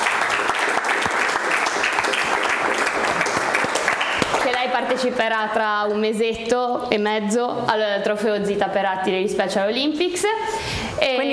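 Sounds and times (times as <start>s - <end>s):
applause: 0.0s - 5.1s
speech: 4.8s - 11.3s.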